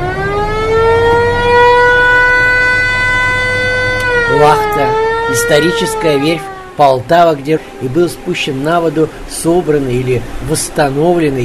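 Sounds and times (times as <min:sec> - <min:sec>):
river boat horn blast: 0:01.0 - 0:06.9
speech: 0:05.4 - 0:11.4.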